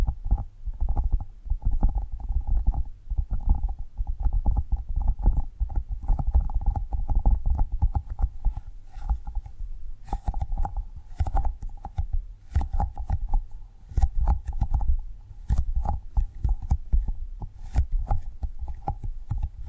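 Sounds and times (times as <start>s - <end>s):
faint steady hum: 0.0s - 19.6s
tapping and gripping thuds: 6.1s - 19.6s.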